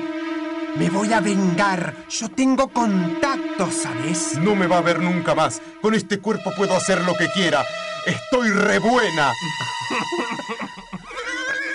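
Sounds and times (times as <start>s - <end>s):
speech: 0.8s - 10.8s
laughter: 9.5s - 11.7s
horse neighing: 11.0s - 11.7s.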